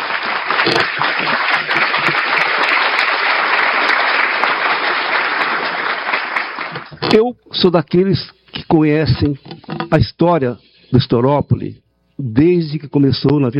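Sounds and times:
audience applause: 0.0 - 7.0
speech: 0.6 - 1.4, 7.1 - 13.5.

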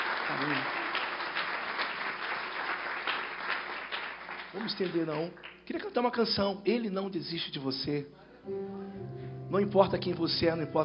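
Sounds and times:
audience applauding: 0.0 - 5.9
speech: 0.4 - 0.8, 4.5 - 10.8.

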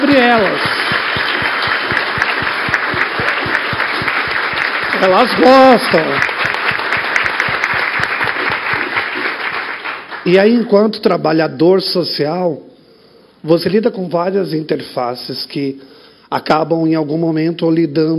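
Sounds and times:
speech: 0.0 - 0.8, 5.0 - 6.4, 10.3 - 12.7, 13.4 - 18.1
audience applause: 0.0 - 10.3.

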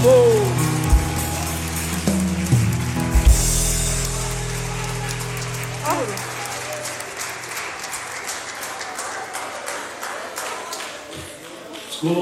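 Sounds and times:
sustained low musical tones: 0.0 - 7.3
crowd clapping: 0.0 - 12.2.

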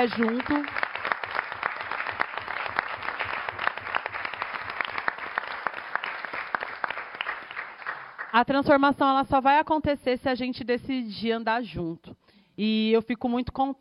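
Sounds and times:
speech: 0.0 - 0.8, 8.4 - 13.7
audience applause in an auditorium: 0.0 - 8.4.

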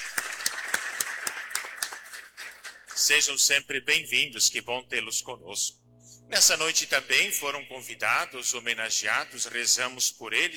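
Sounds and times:
rhythmic clapping in unison welcoming a group of visitors: 0.0 - 3.4
speech: 3.0 - 10.5.

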